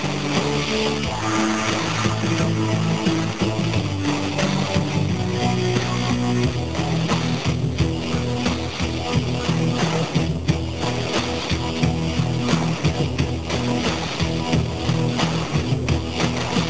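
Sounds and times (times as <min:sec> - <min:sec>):
funky music: 0:00.0 - 0:16.6.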